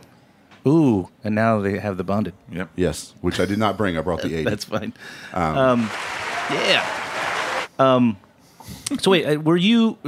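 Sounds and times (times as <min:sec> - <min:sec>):
speech: 0:00.6 - 0:07.1, 0:07.8 - 0:10.0
audience clapping: 0:05.4 - 0:07.7.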